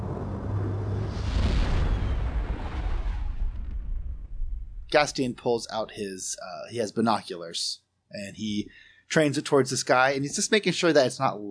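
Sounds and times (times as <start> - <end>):
spaceship entering the atmosphere with a rumbling roar: 0.0 - 5.1
speech: 4.9 - 11.5.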